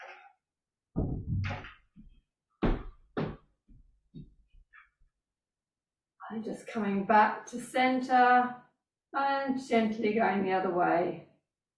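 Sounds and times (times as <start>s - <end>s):
door being shut: 1.0s - 1.8s
speech: 6.4s - 11.2s.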